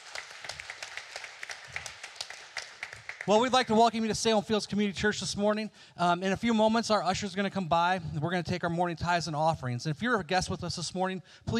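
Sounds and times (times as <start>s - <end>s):
audience applause: 0.0s - 3.8s
speech: 3.2s - 11.5s.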